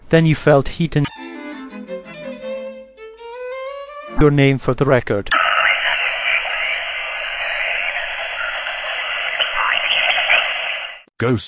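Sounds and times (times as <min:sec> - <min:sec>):
speech: 0:00.1 - 0:01.1, 0:04.2 - 0:05.4, 0:11.2 - 0:11.4
radio static with faint transmission: 0:05.3 - 0:11.1.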